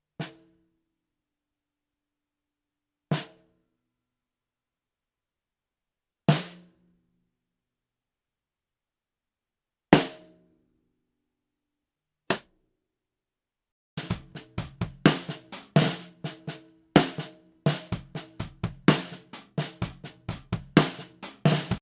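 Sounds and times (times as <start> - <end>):
TAMA LAL145 low drum: 14.0 - 16.4, 17.0 - 21.8.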